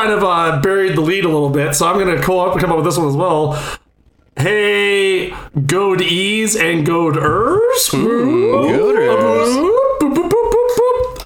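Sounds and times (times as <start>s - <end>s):
speech: 0.0s - 3.8s, 4.4s - 10.2s
voice imitating a siren: 7.2s - 11.2s.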